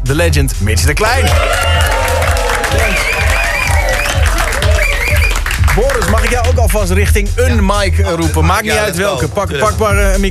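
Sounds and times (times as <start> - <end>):
speech: 0.1 - 2.0, 5.8 - 10.2
cheers and whoops: 1.2 - 5.4
studio audience applause: 1.2 - 6.7.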